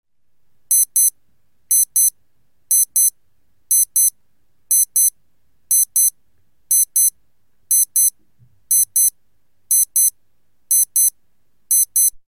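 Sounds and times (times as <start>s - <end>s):
beep: 0.7s - 1.1s, 1.7s - 2.1s, 2.7s - 3.1s, 3.7s - 4.1s, 4.7s - 5.1s, 5.7s - 6.1s, 6.7s - 7.1s, 7.7s - 8.1s, 8.7s - 9.1s, 9.7s - 10.1s, 10.7s - 11.1s, 11.7s - 12.2s.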